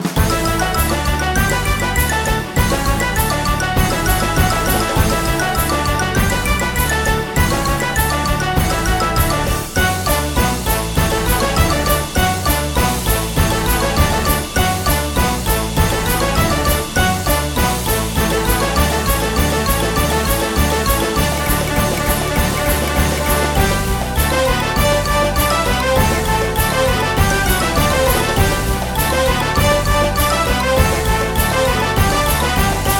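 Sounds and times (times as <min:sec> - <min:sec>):
old tune: 0:00.0 - 0:32.9.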